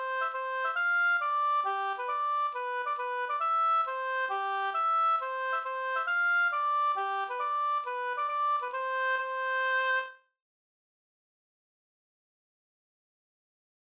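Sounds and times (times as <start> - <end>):
hambo polska folk dance tune: 0.0 - 10.1.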